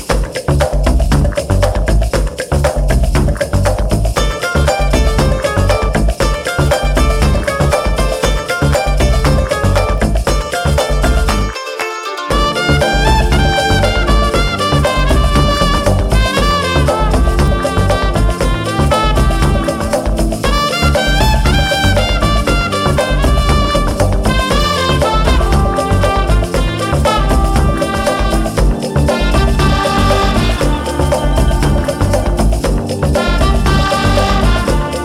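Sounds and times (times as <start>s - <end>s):
music: 0.0s - 35.0s.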